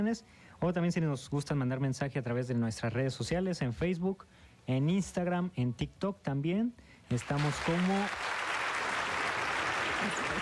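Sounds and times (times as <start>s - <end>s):
speech: 0.0s - 8.4s
applause from people in a radio studio booth: 7.2s - 10.4s.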